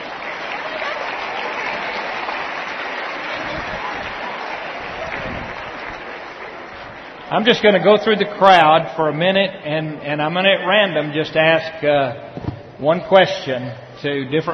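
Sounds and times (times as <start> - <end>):
audience applause: 0.0 - 8.7
speech: 7.3 - 14.5.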